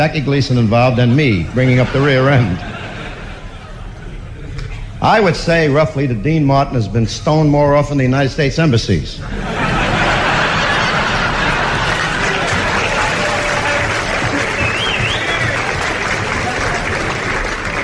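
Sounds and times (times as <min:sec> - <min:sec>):
speech: 0:00.0 - 0:02.8, 0:05.0 - 0:09.5
laughter: 0:00.8 - 0:04.9, 0:09.2 - 0:17.8
audience applause: 0:09.5 - 0:17.8.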